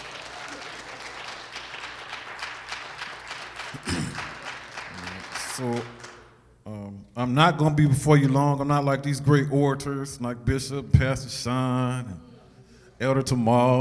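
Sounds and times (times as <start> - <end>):
audience clapping: 0.0 - 6.4
person speaking over applause: 4.2 - 6.3
speech: 5.6 - 6.0, 7.2 - 12.3, 13.0 - 13.7.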